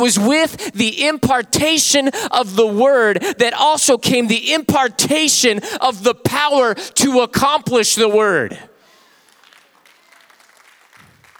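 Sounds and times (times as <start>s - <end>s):
speech: 0.0s - 8.7s
audience clapping: 8.8s - 11.3s.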